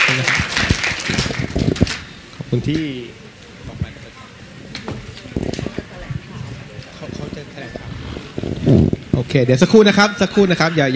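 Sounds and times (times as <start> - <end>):
audience applause: 0.0 - 2.1
speech: 2.5 - 3.2, 8.7 - 10.9.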